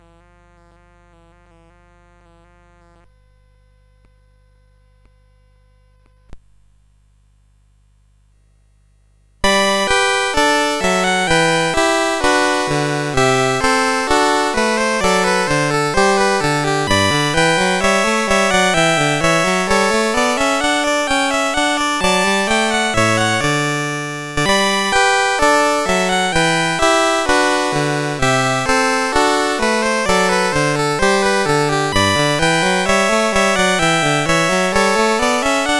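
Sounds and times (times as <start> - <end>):
gavotte on CSG8580R5 sound chip: 9.4 - 35.7.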